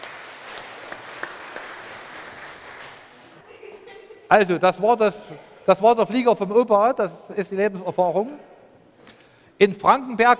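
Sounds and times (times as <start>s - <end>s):
audience applause: 0.0s - 3.4s
laughter: 3.2s - 4.6s
speech: 4.3s - 8.5s, 9.6s - 10.3s.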